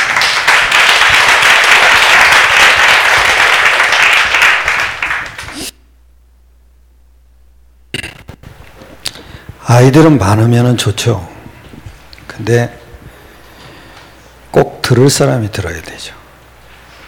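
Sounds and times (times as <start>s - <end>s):
audience applause: 0.0s - 5.6s
speech: 9.7s - 11.3s, 12.4s - 12.8s, 14.9s - 16.2s.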